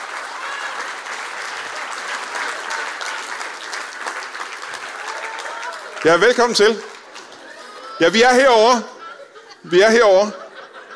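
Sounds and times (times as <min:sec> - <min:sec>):
audience applauding a great-grandmother arriving as a guest on a show: 0:00.0 - 0:08.6
laughter: 0:00.1 - 0:03.8, 0:05.4 - 0:10.9
speech: 0:06.0 - 0:06.9, 0:08.0 - 0:08.9, 0:09.6 - 0:10.4.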